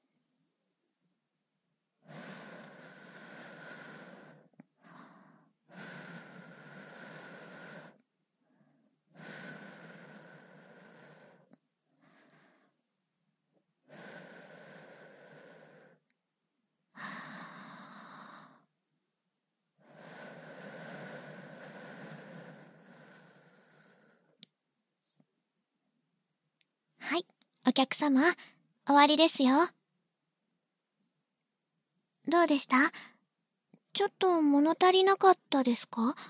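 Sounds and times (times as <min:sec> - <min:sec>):
breath blown onto something for ASMR: 0:02.0 - 0:12.8, 0:17.0 - 0:18.7, 0:19.8 - 0:24.4
speech: 0:27.0 - 0:29.8, 0:32.3 - 0:33.1, 0:34.0 - 0:36.2.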